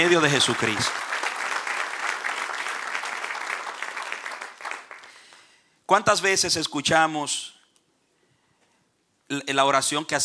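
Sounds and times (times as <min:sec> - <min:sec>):
speech: 0:00.0 - 0:01.1, 0:05.9 - 0:07.6, 0:09.3 - 0:10.2
audience applause: 0:00.0 - 0:05.4.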